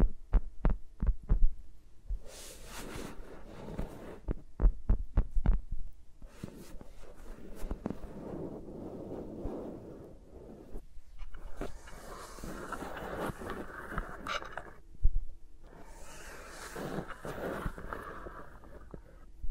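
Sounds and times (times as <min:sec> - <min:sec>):
fingers tapping on microphones: 0:00.0 - 0:02.2, 0:04.3 - 0:05.8
fingers rubbing and brushing microphones: 0:02.2 - 0:04.4, 0:06.2 - 0:14.8, 0:15.7 - 0:19.2.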